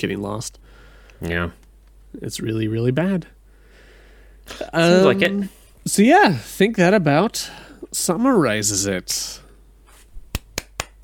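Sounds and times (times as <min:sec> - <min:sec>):
speech: 0:00.0 - 0:03.4, 0:04.5 - 0:09.4
applause: 0:10.6 - 0:11.0.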